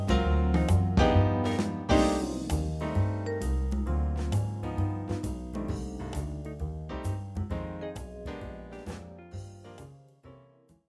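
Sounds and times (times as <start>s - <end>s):
brass music: 0.0s - 7.7s.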